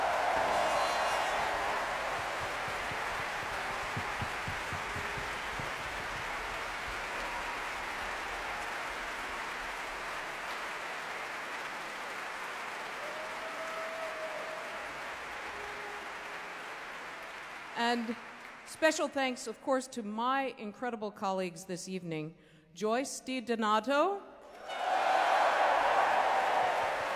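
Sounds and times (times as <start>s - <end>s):
applause from a large audience at a Proms concert: 0.0s - 18.8s, 24.6s - 27.1s
speech: 17.9s - 24.2s.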